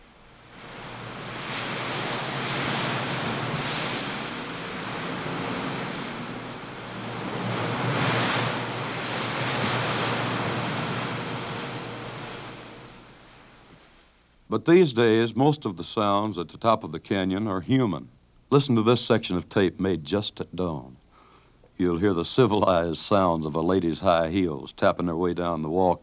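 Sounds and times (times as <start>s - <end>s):
wind whipping scrubby pine trees on the canyon edge: 0.0s - 14.4s
speech: 14.5s - 21.0s, 21.8s - 26.0s.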